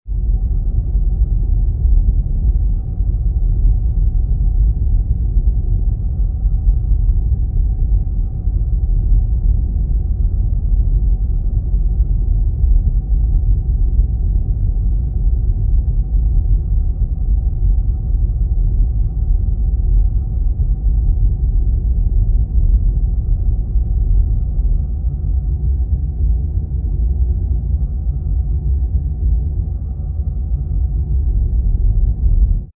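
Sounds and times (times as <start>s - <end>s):
deep hot noise diffusion: 0.1s - 32.7s.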